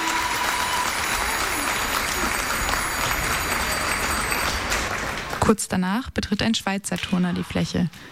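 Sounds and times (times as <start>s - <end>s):
audience applause: 0.0s - 5.5s
bicycle bells of Dutch fans ringing: 1.9s - 4.9s
speech: 5.5s - 8.1s.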